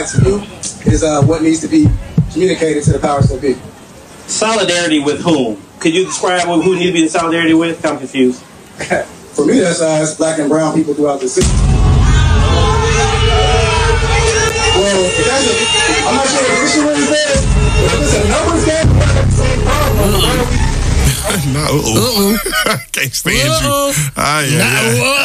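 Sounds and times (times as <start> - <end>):
speech: 0.0 - 11.8, 21.5 - 25.2
overlapping voices and chatter: 0.0 - 25.2
crowd booing: 11.4 - 22.4
laughter: 15.6 - 25.2.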